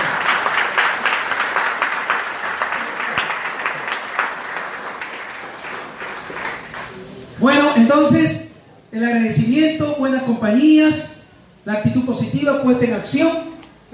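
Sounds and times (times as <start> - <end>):
loud sustained crowd applause: 0.0 - 7.2
speech: 7.4 - 8.4, 9.0 - 13.9.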